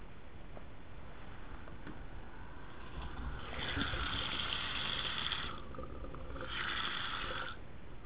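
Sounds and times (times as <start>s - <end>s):
plumbing pipe noise: 1.4s - 7.6s.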